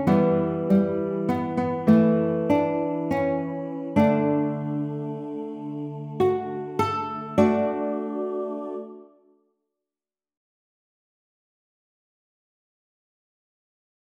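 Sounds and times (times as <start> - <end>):
baritone ukulele: 0.0 - 5.2, 6.2 - 8.3.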